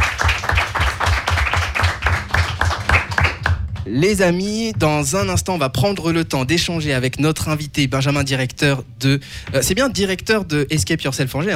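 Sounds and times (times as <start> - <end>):
small group applause: 0.0 - 3.9
speech: 3.9 - 11.5.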